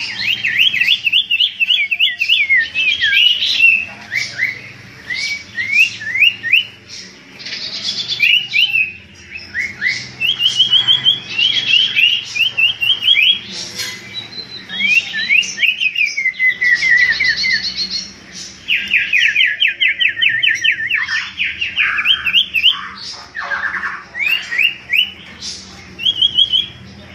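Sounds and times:
common iora song: 0.0 - 27.1.

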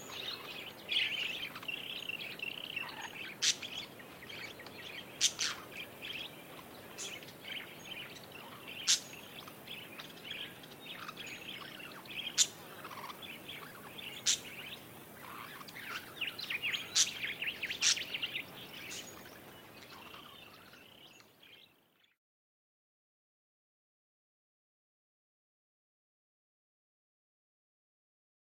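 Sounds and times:
parakeet flock chattering chirps: 0.0 - 21.7.

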